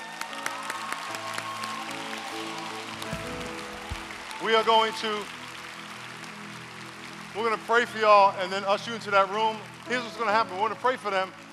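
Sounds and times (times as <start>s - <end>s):
audience applauding: 0.0s - 11.5s
speech: 4.5s - 5.4s, 7.4s - 11.4s.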